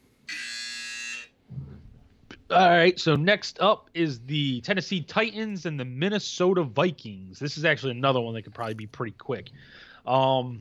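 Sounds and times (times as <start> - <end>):
buzzer: 0.3 - 1.4
speech: 2.5 - 10.6.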